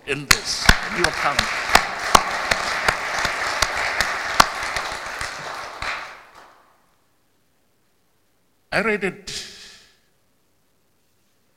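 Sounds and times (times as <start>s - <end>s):
speech: 0.1s - 1.8s, 8.7s - 9.4s
round of applause: 0.2s - 6.8s.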